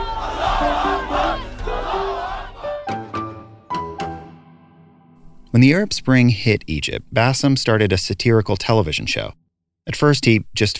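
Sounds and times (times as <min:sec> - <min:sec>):
crowd cheering: 0:00.0 - 0:03.3
speech: 0:05.6 - 0:10.7.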